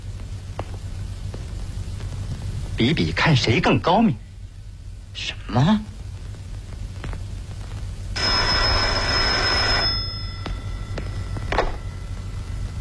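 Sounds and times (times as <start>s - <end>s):
low hum: 0.0s - 12.7s
speech: 2.8s - 4.2s, 5.2s - 5.9s
old-fashioned telephone bell ringing: 8.2s - 12.7s.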